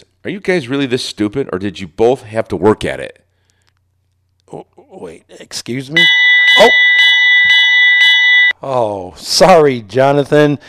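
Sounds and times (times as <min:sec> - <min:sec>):
speech: 0:00.0 - 0:03.2, 0:04.5 - 0:06.9, 0:08.6 - 0:10.6
bell signaling end of segment: 0:06.0 - 0:08.5.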